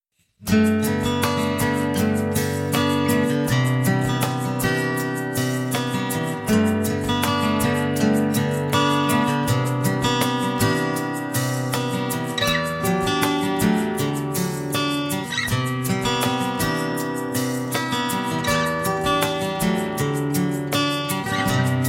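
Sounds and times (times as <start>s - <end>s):
acoustic music: 0.3s - 21.8s.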